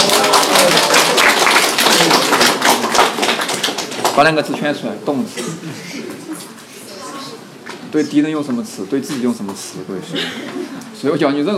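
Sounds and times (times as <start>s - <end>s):
applause: 0.0s - 4.6s
speech: 4.2s - 6.1s, 7.9s - 11.5s.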